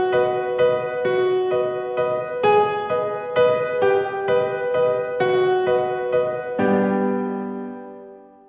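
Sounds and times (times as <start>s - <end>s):
piano piece: 0.0s - 8.4s.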